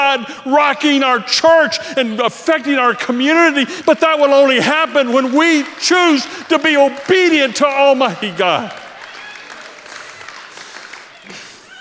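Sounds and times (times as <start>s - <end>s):
speech: 0.2s - 8.8s
audience applause: 3.1s - 11.7s.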